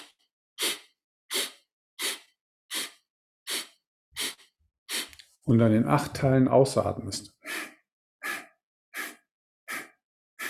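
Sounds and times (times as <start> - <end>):
short sharp sniffing inhalations: 0.0 - 5.2, 7.4 - 10.4
speech: 5.5 - 7.4.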